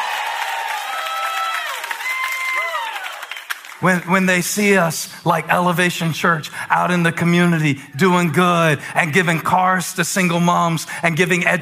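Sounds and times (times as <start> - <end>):
audience cheering and applauding: 0.0 - 4.2
speech: 3.8 - 11.6.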